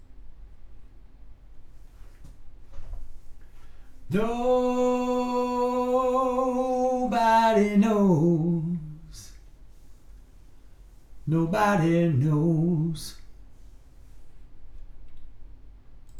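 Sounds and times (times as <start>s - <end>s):
person singing: 4.1s - 9.3s, 11.3s - 13.2s.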